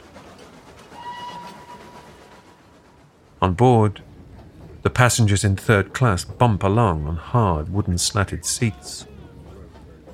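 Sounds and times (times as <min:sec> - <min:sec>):
steam train clattering: 0:00.0 - 0:08.9
steam train high whistle tone: 0:01.0 - 0:02.2
speech: 0:03.4 - 0:04.1, 0:04.8 - 0:09.1.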